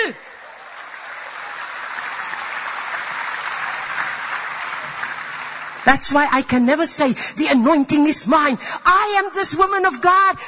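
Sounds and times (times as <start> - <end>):
speech: 0.1 - 0.3, 5.8 - 10.4
audience clapping: 0.3 - 6.5.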